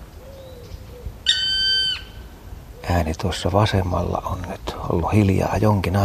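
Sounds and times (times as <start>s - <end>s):
black woodpecker call: 0.0s - 3.0s
speech: 2.9s - 6.0s.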